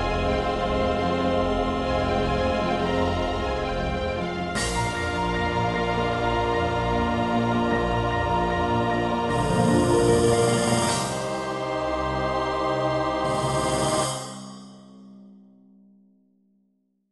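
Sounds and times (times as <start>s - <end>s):
orchestrated aquatic ambiance music sequenced on Super Nintendo: 0.0s - 13.6s.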